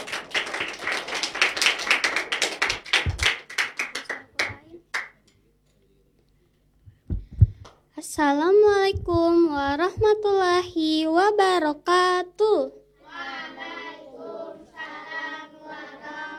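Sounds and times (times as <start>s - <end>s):
audience clapping: 0.0s - 5.2s
speech: 8.2s - 12.7s.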